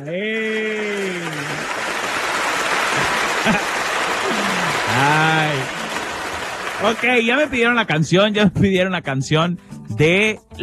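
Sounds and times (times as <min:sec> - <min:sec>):
speech: 0:00.0 - 0:00.6, 0:06.8 - 0:10.6
applause: 0:00.0 - 0:08.0.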